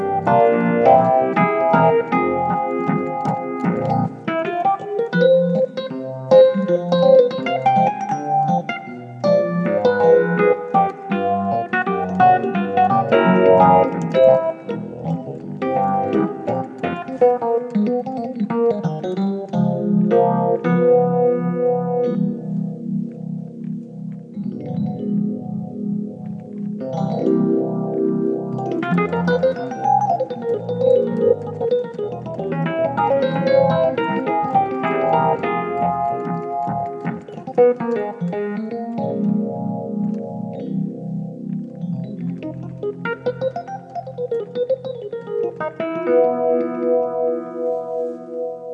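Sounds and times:
Rhodes electric piano: 0:00.0 - 0:48.7.

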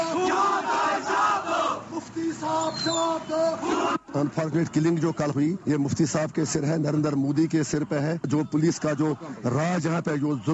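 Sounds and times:
crowd of protesters chanting in unison: 0:00.0 - 0:04.1
speech: 0:02.1 - 0:10.5.

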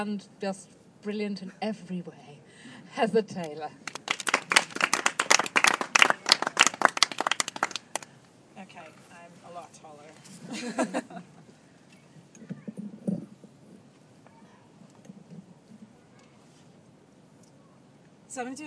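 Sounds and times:
speech: 0:00.0 - 0:03.9, 0:10.6 - 0:11.2, 0:18.4 - 0:18.6
audience applause: 0:03.9 - 0:08.1
laughter: 0:10.4 - 0:11.5.

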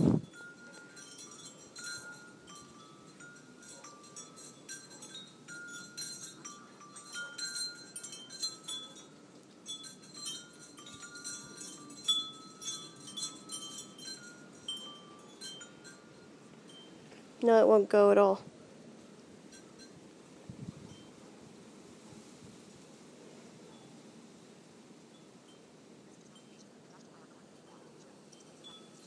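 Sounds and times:
wind rushing: 0:00.0 - 0:00.3
wind chimes ringing in the wind: 0:00.0 - 0:17.8, 0:19.1 - 0:21.2, 0:27.7 - 0:29.0
speech: 0:17.4 - 0:18.5.

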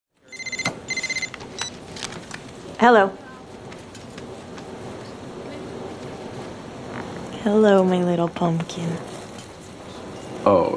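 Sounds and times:
cell phone ringing: 0:00.3 - 0:01.8
speech: 0:02.8 - 0:03.2, 0:07.4 - 0:09.1, 0:10.4 - 0:10.7.

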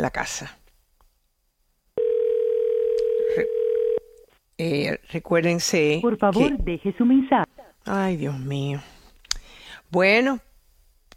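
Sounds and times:
speech: 0:00.0 - 0:00.6, 0:03.4 - 0:03.6, 0:04.6 - 0:08.9, 0:09.9 - 0:10.5
telephone call ringing tone: 0:02.0 - 0:04.2.

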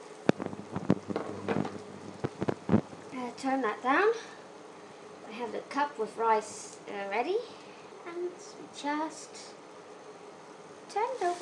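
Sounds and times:
water boiling in a wok: 0:00.0 - 0:04.2, 0:10.9 - 0:11.3
speech: 0:03.3 - 0:04.4, 0:05.4 - 0:07.6, 0:08.2 - 0:09.6, 0:10.9 - 0:11.3.

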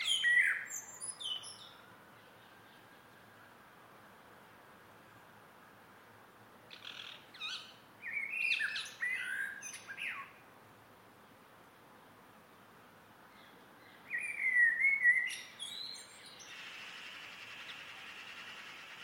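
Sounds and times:
close blackbird singing in an evening garden: 0:00.0 - 0:02.8, 0:06.7 - 0:10.4, 0:13.3 - 0:19.0.

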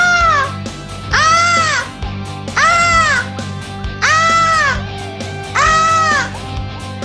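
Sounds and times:
voice imitating a peacock call: 0:00.0 - 0:01.9, 0:02.6 - 0:03.3, 0:04.0 - 0:04.8, 0:05.6 - 0:06.4.

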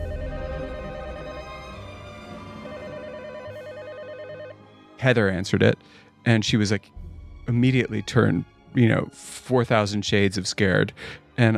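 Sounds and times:
telephone ringing: 0:00.0 - 0:01.9, 0:02.6 - 0:04.6
speech: 0:05.0 - 0:11.5.

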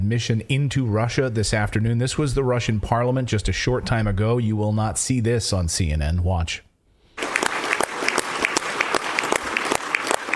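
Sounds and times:
speech: 0:00.1 - 0:06.7
parliament members applauding: 0:07.2 - 0:10.3.

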